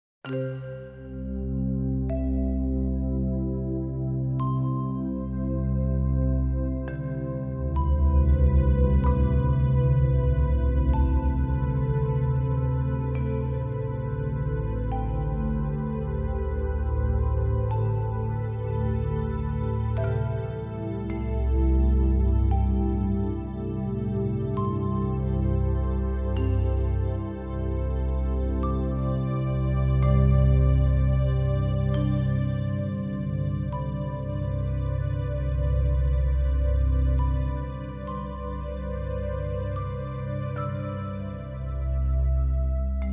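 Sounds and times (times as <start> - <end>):
instrumental music: 0.3 - 43.1.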